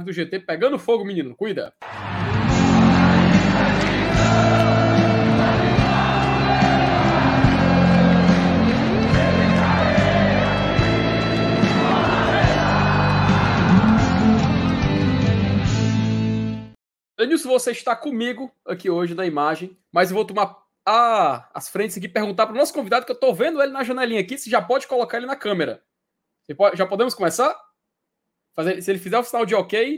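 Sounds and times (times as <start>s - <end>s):
speech: 0.0s - 2.4s, 17.2s - 25.9s, 26.5s - 27.7s, 28.6s - 29.9s
crowd cheering: 1.8s - 15.8s
show intro jingle: 1.8s - 16.7s.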